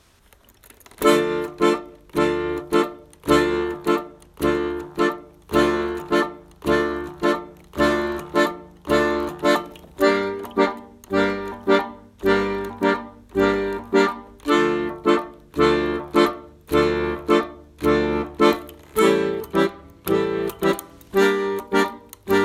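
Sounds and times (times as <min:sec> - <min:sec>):
basic blues in D minor: 0:00.4 - 0:22.4.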